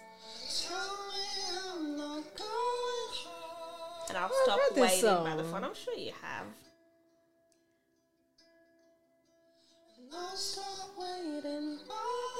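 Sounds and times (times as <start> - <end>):
song with smooth sung vocal: 0.0 - 6.4, 9.6 - 12.3
speech: 4.1 - 6.7.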